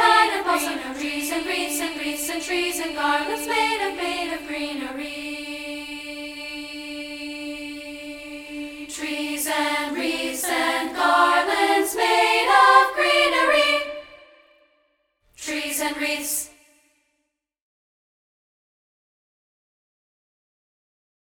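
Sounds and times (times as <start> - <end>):
a cappella singing: 0.0 - 14.5, 15.4 - 16.9.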